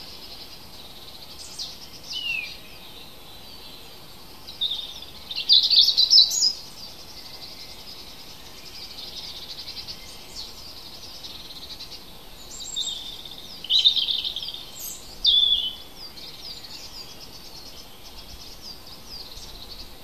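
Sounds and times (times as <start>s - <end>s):
chorus of other birds: 0.0s - 20.0s.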